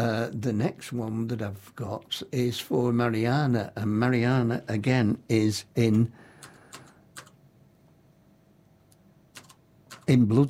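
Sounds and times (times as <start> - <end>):
speech: 0.0 - 6.2, 10.1 - 10.4
low hum: 0.0 - 10.4
computer keyboard typing: 6.4 - 7.4, 9.3 - 10.2.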